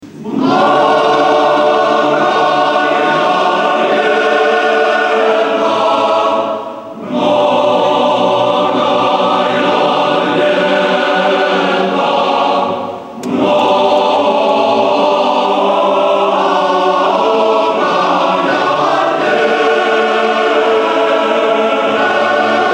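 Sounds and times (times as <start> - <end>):
male choir singing: 0.1 - 22.7.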